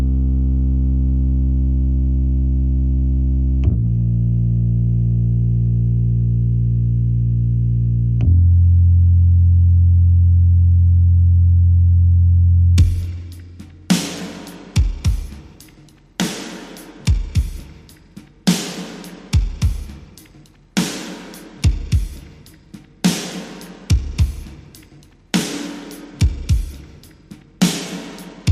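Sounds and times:
bass: 0.0 - 18.7, 19.3 - 23.3, 23.9 - 27.8
drums: 12.8 - 28.5.

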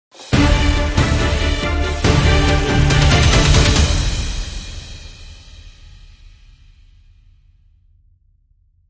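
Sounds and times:
short dramatic music sting: 0.3 - 5.9.

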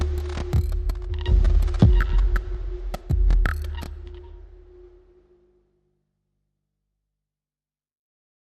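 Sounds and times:
drums: 0.0 - 4.8.

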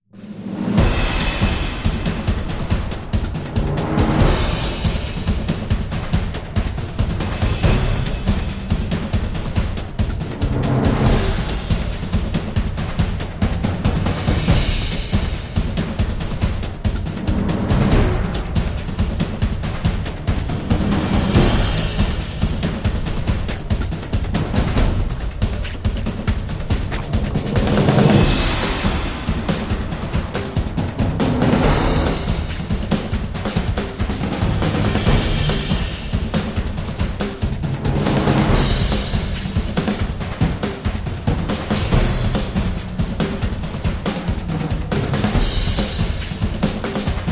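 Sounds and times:
epic film storm drums: 0.2 - 47.3.

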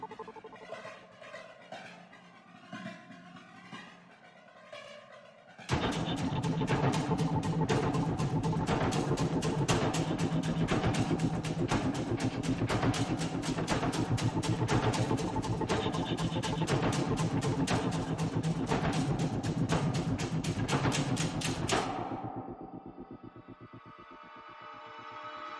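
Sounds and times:
small percussion: 5.7 - 23.0.

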